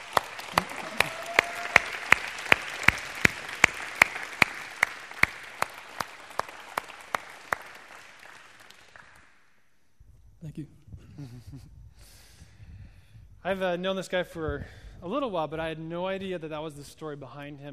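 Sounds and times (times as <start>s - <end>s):
audience clapping to welcome a speaker onto the stage: 0.0s - 9.4s
speech: 10.6s - 10.8s, 11.4s - 11.8s, 13.4s - 17.7s.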